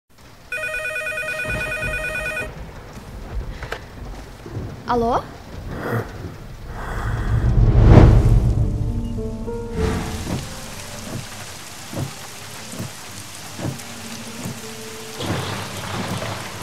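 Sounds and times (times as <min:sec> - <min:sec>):
heavy rain: 0:00.1 - 0:16.6
deep roll of thunder: 0:01.2 - 0:12.3
sharp drips and knocks: 0:01.4 - 0:06.8, 0:09.8 - 0:16.6
speech: 0:04.9 - 0:06.1.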